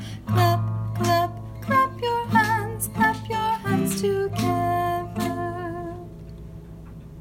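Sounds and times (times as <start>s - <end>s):
hands clapping: 0.5s - 5.6s.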